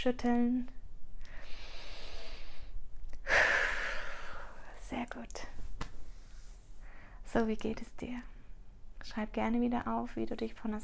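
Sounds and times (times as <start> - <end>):
speech: 0.0 - 0.8, 5.0 - 5.6, 7.3 - 8.3, 9.0 - 10.8
deep breathing in and out: 1.2 - 4.8.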